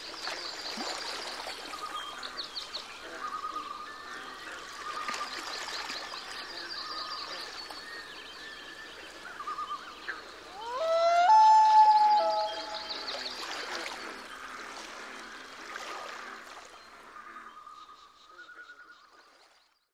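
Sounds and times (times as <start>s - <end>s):
loon crying: 10.5s - 13.0s.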